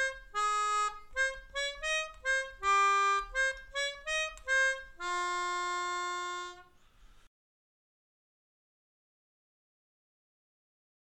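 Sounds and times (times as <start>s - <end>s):
melodica melody: 0.0s - 6.8s.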